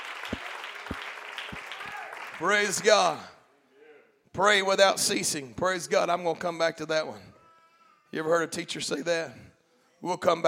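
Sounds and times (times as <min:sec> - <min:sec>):
audience clapping hands: 0:00.0 - 0:03.1
speech: 0:02.4 - 0:03.3, 0:04.4 - 0:07.3, 0:08.1 - 0:10.4.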